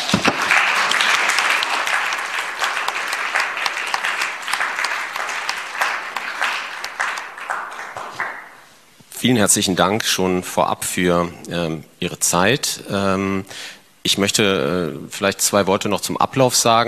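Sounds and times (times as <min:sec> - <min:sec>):
sustained audience applause from a sizable crowd: 0:00.0 - 0:08.7
speech: 0:09.2 - 0:16.8.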